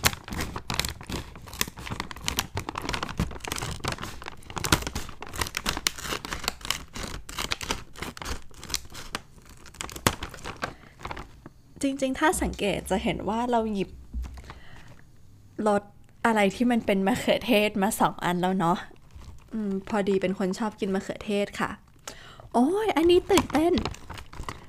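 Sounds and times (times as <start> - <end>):
crinkly snack packet torn open and handled: 0.0 - 11.3, 23.2 - 24.6
speech: 11.8 - 14.0, 15.6 - 18.9, 19.5 - 21.8, 22.6 - 24.0.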